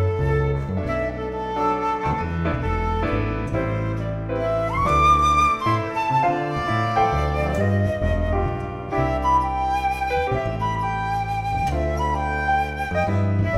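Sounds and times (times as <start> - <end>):
jazz band trio playing: 0.0 - 13.5.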